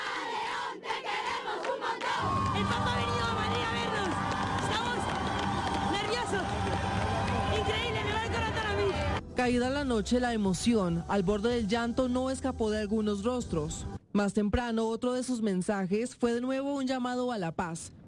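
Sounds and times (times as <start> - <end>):
crowd of faithful singing in unison: 0.0 - 2.9
crowd of faithful cheering: 0.0 - 9.2
speech: 9.4 - 18.0.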